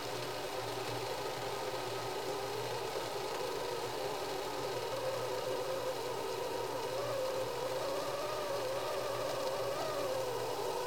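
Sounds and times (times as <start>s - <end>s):
kettle whistling: 0.1s - 10.8s.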